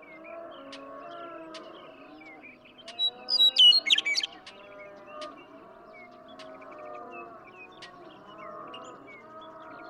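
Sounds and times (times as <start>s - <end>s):
western meadowlark singing: 3.3s - 4.3s.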